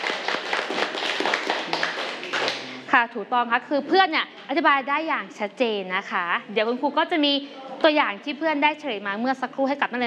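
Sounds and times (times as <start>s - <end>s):
students clapping for a class representative in a classroom: 0.0s - 2.8s
speech: 3.0s - 10.0s.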